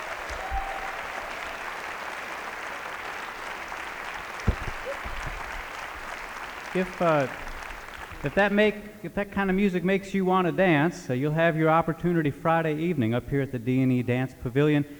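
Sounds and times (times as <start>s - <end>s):
audience applause: 0.0s - 9.6s
laughter: 0.0s - 14.9s
speech: 6.8s - 7.5s, 8.2s - 14.9s.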